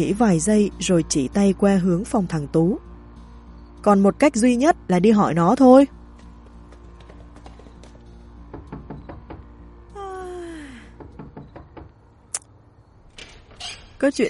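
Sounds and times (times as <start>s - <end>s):
speech: 0.0s - 2.9s, 3.8s - 6.0s, 14.0s - 14.2s
knocking on a door: 6.4s - 9.6s, 10.9s - 12.0s.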